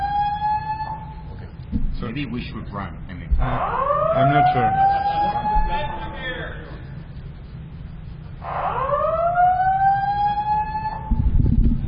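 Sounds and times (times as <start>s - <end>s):
fire alarm siren wailing: 0.0s - 1.3s, 3.4s - 6.6s, 8.3s - 11.8s
low rumbling background: 0.0s - 11.8s
speech: 2.0s - 5.2s.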